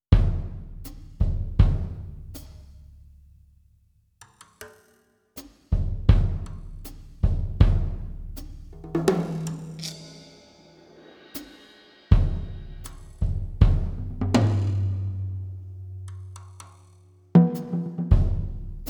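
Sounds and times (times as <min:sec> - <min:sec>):
solo drums: 0:00.0 - 0:03.1, 0:05.4 - 0:16.8, 0:17.4 - 0:18.8.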